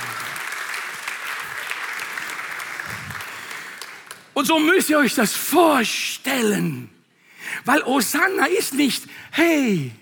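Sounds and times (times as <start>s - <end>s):
crowd clapping: 0.0s - 4.7s
speech: 4.4s - 7.0s, 7.6s - 10.0s.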